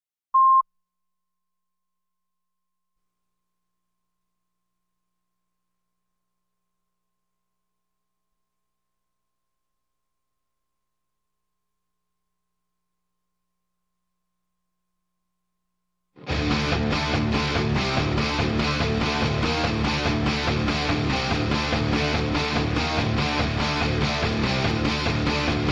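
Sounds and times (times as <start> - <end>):
guitars playing: 16.2 - 25.7.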